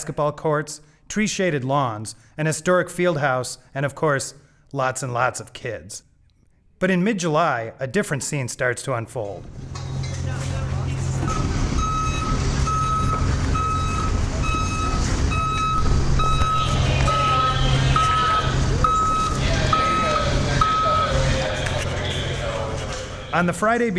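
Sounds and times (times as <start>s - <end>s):
speech: 0.0s - 6.1s, 6.8s - 10.5s, 23.3s - 23.9s
trucks lumbering across open fields: 9.5s - 23.3s.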